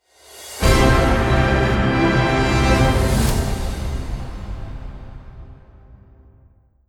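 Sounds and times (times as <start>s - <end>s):
fanfare: 0.6s - 5.7s.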